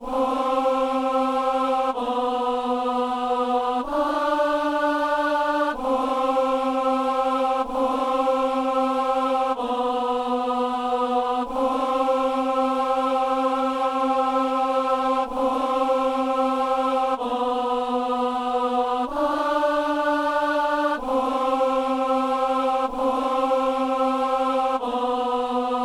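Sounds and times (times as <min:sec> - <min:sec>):
alto voice singing amen: 0:00.0 - 0:25.8.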